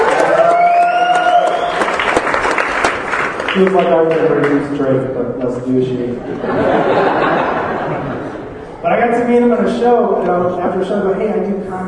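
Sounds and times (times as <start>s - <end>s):
audience cheering: 0.0s - 3.8s
audience clapping: 0.0s - 4.8s
speech: 3.6s - 11.8s
laughter: 6.0s - 8.8s.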